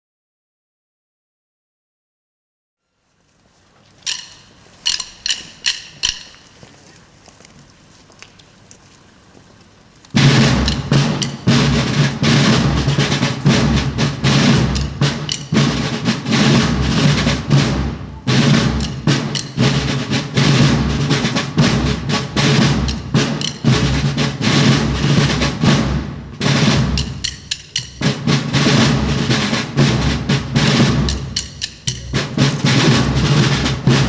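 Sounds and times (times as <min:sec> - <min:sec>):
drum played with a stick: 0:04.1 - 0:06.6, 0:10.2 - 0:34.0.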